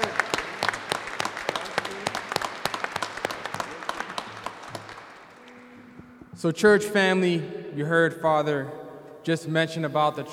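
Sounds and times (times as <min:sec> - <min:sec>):
audience applause for a choir: 0:00.0 - 0:05.6
speech: 0:06.4 - 0:10.3.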